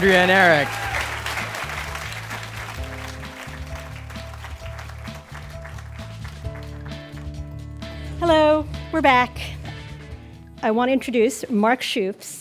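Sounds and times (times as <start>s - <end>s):
speech: 0.0s - 0.8s, 8.3s - 9.5s, 10.6s - 12.4s
audience applause: 0.0s - 7.4s.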